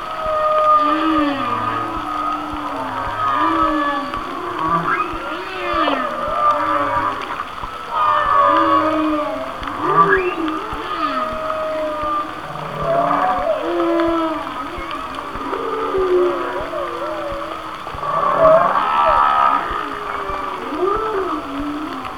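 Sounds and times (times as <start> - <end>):
whale song: 0.0 - 22.1.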